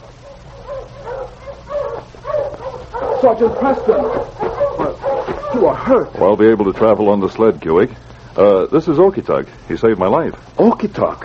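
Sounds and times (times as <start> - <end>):
low hum: 0.0 - 11.2
sled dog team barking and yipping: 0.1 - 5.9
speech: 3.2 - 4.4, 5.5 - 11.2.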